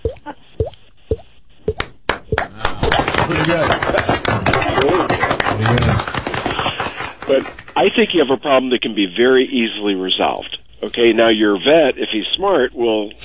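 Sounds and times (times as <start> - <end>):
cheek thumping imitating dripping urine: 0.0 - 2.5
people laughing: 2.7 - 7.5
speech: 3.4 - 4.2, 4.8 - 6.2, 7.3 - 13.2.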